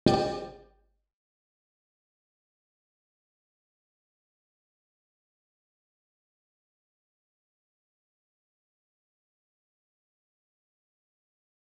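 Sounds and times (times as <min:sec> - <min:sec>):
ambient music: 0:00.0 - 0:00.7.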